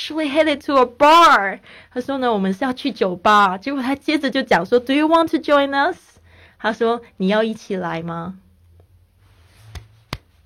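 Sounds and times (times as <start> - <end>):
speech: 0.1 - 8.4
hands clapping: 9.7 - 10.3.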